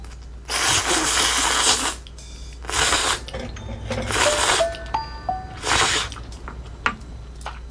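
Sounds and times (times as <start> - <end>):
noisy slurping: 0.5 - 3.3, 5.6 - 6.2
high squeaky tones: 3.3 - 6.2.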